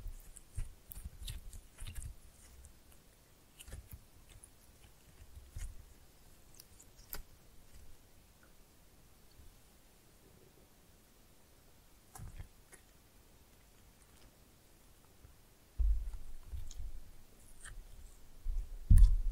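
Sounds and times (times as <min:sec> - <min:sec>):
slime pressed and mixed: 0:00.0 - 0:08.0, 0:15.9 - 0:19.3.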